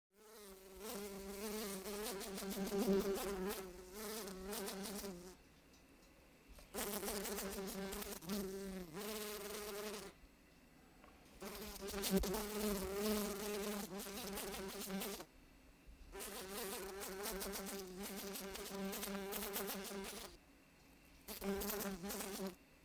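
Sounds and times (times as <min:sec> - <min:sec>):
fly wing buzz: 0:00.2 - 0:05.4, 0:06.7 - 0:10.2, 0:11.4 - 0:15.2, 0:16.2 - 0:20.4, 0:21.3 - 0:22.6
speech: 0:02.3 - 0:03.8.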